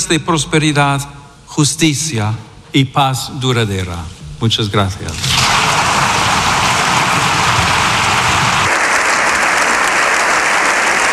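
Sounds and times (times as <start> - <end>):
speech: 0.1 - 5.8
standing ovation applause from parliament deputies: 5.4 - 11.1.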